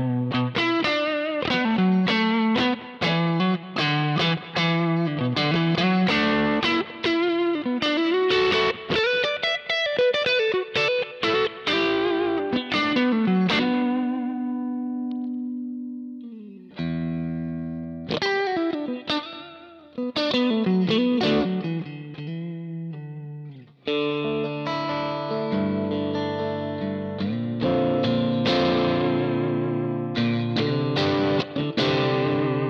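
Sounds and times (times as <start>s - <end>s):
distorted electric guitar through a cabinet profile miked with M75 Fathead and 57: 0.0s - 32.6s.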